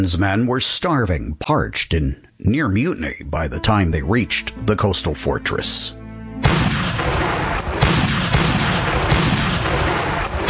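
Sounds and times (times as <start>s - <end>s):
speech: 0.0s - 6.7s
naval bombardment cannon fire: 6.4s - 10.4s.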